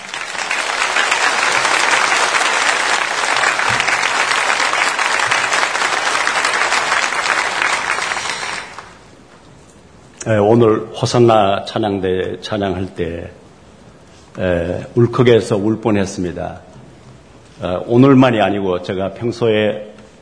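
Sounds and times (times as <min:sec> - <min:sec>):
large crowd applauding to welcome the preacher: 0:00.0 - 0:09.0
speech: 0:10.3 - 0:13.4, 0:14.4 - 0:16.7, 0:17.6 - 0:19.9.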